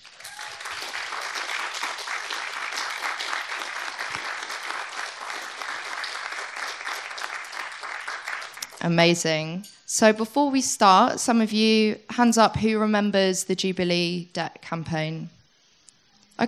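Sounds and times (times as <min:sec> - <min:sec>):
audience applause welcoming panelists at a debt and climate justice campaign event: 0:00.0 - 0:08.8
speech: 0:08.8 - 0:15.4.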